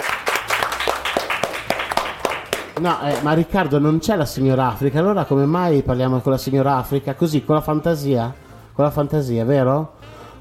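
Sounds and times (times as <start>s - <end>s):
small group applauding: 0.0s - 3.5s
speech: 2.8s - 10.0s.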